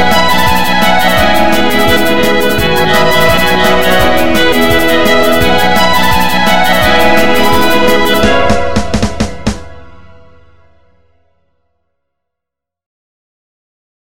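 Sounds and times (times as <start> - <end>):
trance remix: 0.0 - 11.0.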